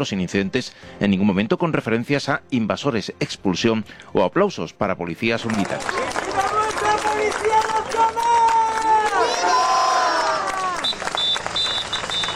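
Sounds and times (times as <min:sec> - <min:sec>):
speech: 0:00.0 - 0:06.6
protest crowd chanting slogans: 0:06.3 - 0:10.8
shrill whistles: 0:10.2 - 0:12.3.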